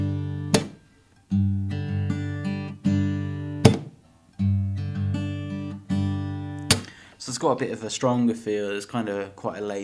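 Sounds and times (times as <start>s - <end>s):
muted strum chop: 0.0s - 0.9s, 1.7s - 7.1s
strummed chords: 0.0s - 8.3s
speech: 7.4s - 9.8s.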